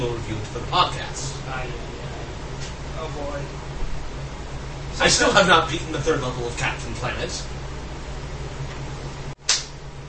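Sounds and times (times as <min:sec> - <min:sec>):
speech: 0:00.0 - 0:02.0, 0:03.0 - 0:03.8, 0:05.0 - 0:07.6
steady low hum and hiss: 0:00.0 - 0:10.0
single sharp hand clap: 0:09.4 - 0:09.8.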